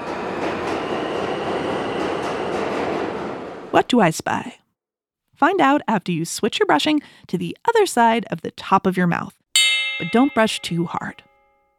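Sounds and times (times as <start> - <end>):
subway train stopping and departing: 0.0 - 4.4
speech: 3.8 - 4.6, 5.4 - 9.4, 10.0 - 11.3.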